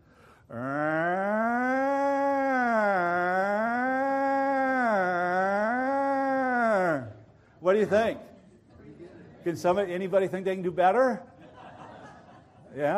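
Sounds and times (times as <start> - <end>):
voice imitating a police siren: 0.5 - 7.2
speech: 7.7 - 8.3, 9.4 - 11.3, 12.8 - 12.9
laughter: 11.2 - 12.9.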